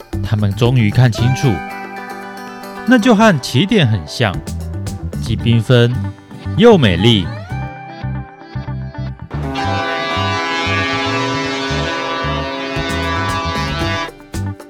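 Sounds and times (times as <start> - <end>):
speech: 0.3 - 1.8, 2.9 - 4.6, 5.2 - 7.4
ship's steam whistle sounding at dock: 9.3 - 14.2.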